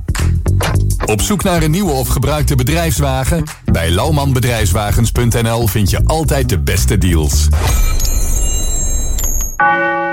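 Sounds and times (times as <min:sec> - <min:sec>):
speech: 0:01.1 - 0:08.2
clock bell chiming: 0:07.9 - 0:10.1
faint high tinkling: 0:08.0 - 0:09.6.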